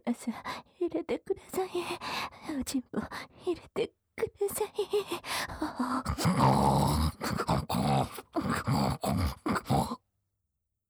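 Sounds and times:
speech: 0.1 - 5.1
human imitating pig snorting grunts: 6.0 - 10.0.

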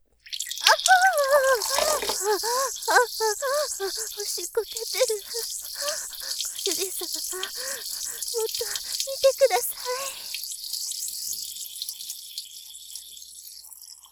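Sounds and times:
three-person relay loop of urination: 0.5 - 10.5.

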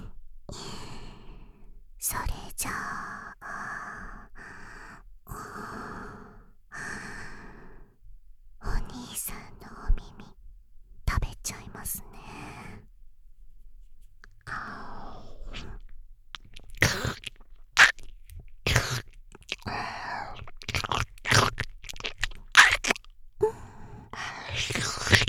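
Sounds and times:
boosted whispering: 2.0 - 3.0, 8.6 - 10.4, 11.1 - 12.9, 14.3 - 25.2
slow ear licking: 14.2 - 25.2.

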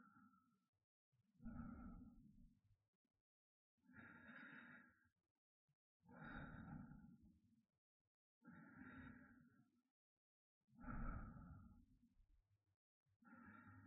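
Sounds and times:
person breathing in sleep: 1.4 - 2.2, 3.9 - 5.1, 6.1 - 7.2, 8.4 - 9.7, 10.8 - 11.9, 13.2 - 13.8.

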